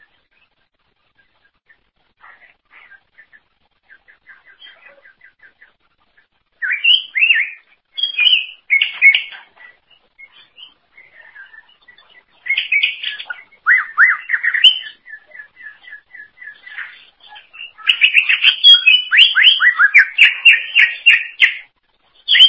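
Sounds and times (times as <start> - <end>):
greater green leafbird whistled warbling: 6.6 - 9.4, 12.4 - 16.8, 17.4 - 21.7, 22.3 - 22.4.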